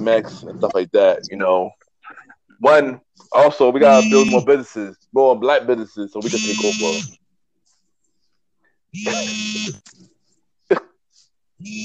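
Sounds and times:
speech: 0.0s - 1.8s, 2.6s - 7.2s, 8.9s - 10.1s, 11.6s - 11.8s
mobile phone buzzing: 3.8s - 4.4s, 6.2s - 7.2s, 8.9s - 9.8s, 11.6s - 11.8s.

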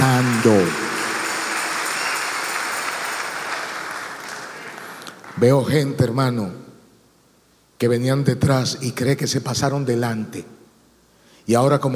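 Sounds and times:
crowd clapping: 0.0s - 5.5s
speech: 0.4s - 0.8s, 5.4s - 6.7s, 7.8s - 10.6s, 11.4s - 11.9s.

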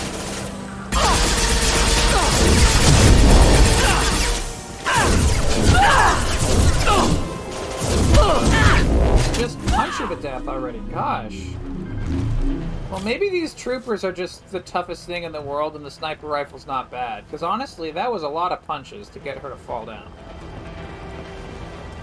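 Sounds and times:
explosive barrels exploding in a shooter video game: 0.9s - 10.4s
speech: 10.2s - 11.8s, 12.5s - 20.6s.

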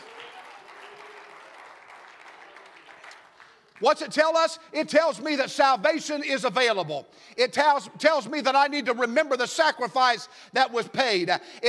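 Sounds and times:
audience clapping hands: 0.0s - 4.2s
speech: 3.8s - 11.6s.

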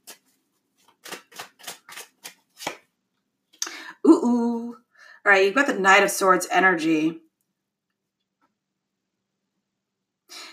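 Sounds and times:
tarot cards being shuffled: 0.0s - 2.9s
speech: 4.2s - 7.2s.

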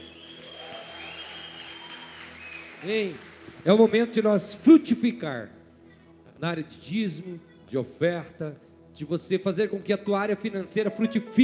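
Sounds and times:
audience applause: 0.0s - 4.1s
speech: 2.8s - 5.6s, 6.4s - 11.4s
sustained keyboard tones: 10.8s - 11.4s.

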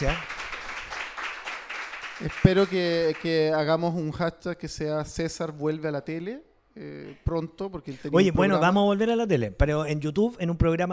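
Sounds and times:
speech: 0.0s - 0.3s, 2.2s - 10.9s
audience applause: 0.0s - 3.5s.

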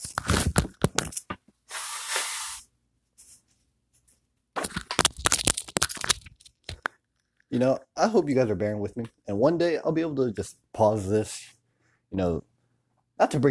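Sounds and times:
scrunching and crumpling paper: 0.0s - 2.4s, 4.6s - 6.9s
tissue crinkling and rustling: 4.8s - 6.8s
speech: 7.6s - 12.5s, 13.2s - 13.4s.

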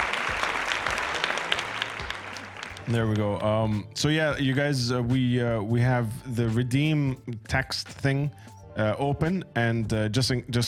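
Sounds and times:
clapping: 0.0s - 3.8s
speech: 2.9s - 10.6s.

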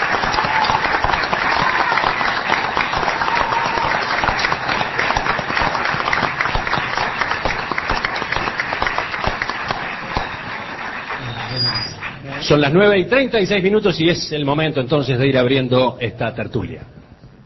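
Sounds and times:
crowd applauding: 0.0s - 12.8s
speech: 12.5s - 17.0s.

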